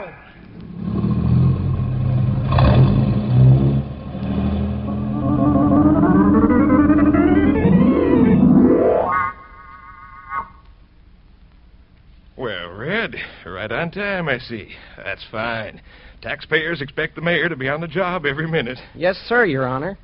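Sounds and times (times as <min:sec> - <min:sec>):
car engine revving and accelerating on a test course: 0:00.7 - 0:08.5
speech: 0:13.8 - 0:20.0.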